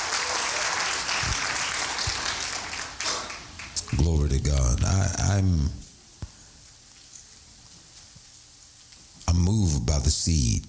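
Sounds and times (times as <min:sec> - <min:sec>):
audience clapping: 0:00.0 - 0:04.2
speech: 0:04.0 - 0:05.9, 0:09.4 - 0:10.6.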